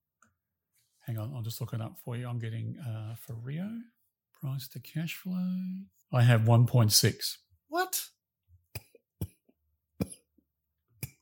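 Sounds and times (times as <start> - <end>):
speech: 1.1 - 8.1
person coughing and choking during a conversation: 10.0 - 10.3.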